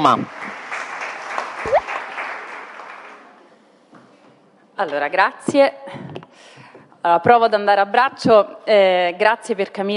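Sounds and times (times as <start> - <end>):
speech: 0.0 - 0.4, 4.8 - 9.9
audience applauding: 0.3 - 3.4.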